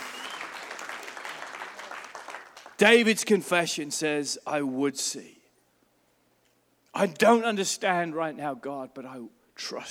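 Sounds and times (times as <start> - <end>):
audience applause: 0.0 - 2.8
speech: 2.8 - 5.4, 7.0 - 9.8.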